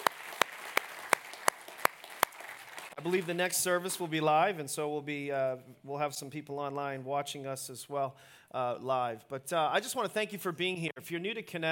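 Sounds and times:
church audience clapping for online and cable viewers: 0:00.0 - 0:04.0
speech: 0:03.0 - 0:11.7.

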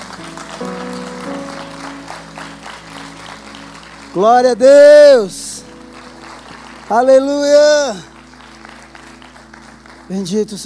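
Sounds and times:
audience applause: 0:00.0 - 0:10.6
speech: 0:04.2 - 0:05.4, 0:06.9 - 0:08.1, 0:10.1 - 0:10.6.

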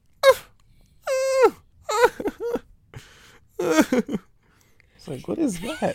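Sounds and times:
person imitating loud crying: 0:00.2 - 0:02.6, 0:03.6 - 0:04.2
speech: 0:03.6 - 0:04.2, 0:05.0 - 0:05.9.

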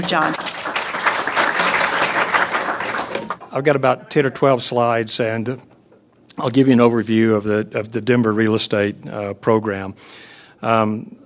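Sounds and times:
speech: 0:00.0 - 0:00.5, 0:03.6 - 0:05.7, 0:06.4 - 0:11.2
audience applause welcoming panelists at a real estate event: 0:00.0 - 0:03.5.

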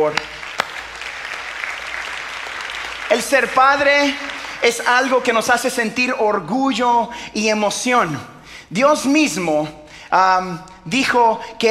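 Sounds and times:
speech: 0:00.0 - 0:00.3, 0:03.1 - 0:11.6
audience applause: 0:00.0 - 0:05.3.

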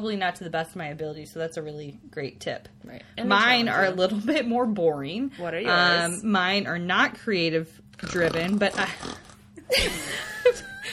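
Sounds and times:
speech: 0:00.0 - 0:10.6
person imitating a snore: 0:08.0 - 0:09.4
laughter: 0:09.7 - 0:10.9.

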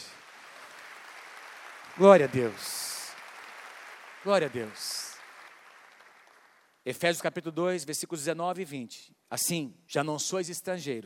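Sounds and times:
audience applauding: 0:00.0 - 0:06.8
speech: 0:02.0 - 0:02.8, 0:04.2 - 0:05.0, 0:06.8 - 0:11.0.

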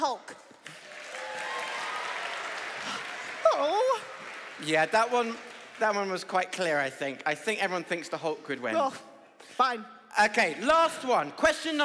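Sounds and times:
audience applause: 0:00.6 - 0:06.6
speech: 0:04.6 - 0:11.8.

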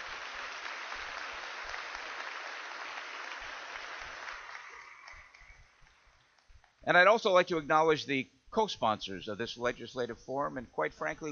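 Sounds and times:
audience applause: 0:00.0 - 0:05.8
speech: 0:06.9 - 0:11.3.

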